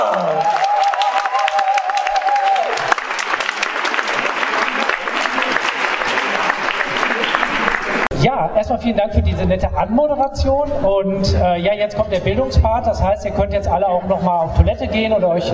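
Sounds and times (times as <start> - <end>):
high whoop: 0.0 - 3.0
audience applause: 0.0 - 8.1
speech: 8.2 - 15.5.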